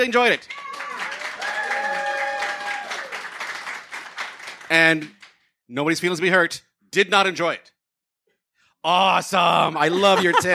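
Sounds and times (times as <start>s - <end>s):
speech: 0.0s - 0.7s, 4.7s - 7.7s, 8.8s - 10.5s
audience applause: 0.2s - 5.1s
laughter: 9.6s - 10.5s.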